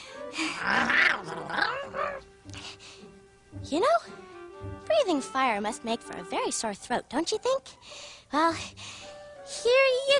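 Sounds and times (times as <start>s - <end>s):
dragon growling: 0.4s - 2.2s
speech: 0.6s - 1.4s, 3.7s - 4.2s, 5.0s - 10.1s.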